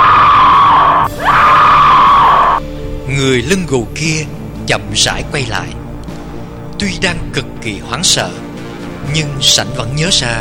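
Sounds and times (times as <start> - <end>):
two women screaming in fright: 0.0 - 2.6
speech: 3.2 - 5.8, 6.8 - 8.4, 9.0 - 10.3.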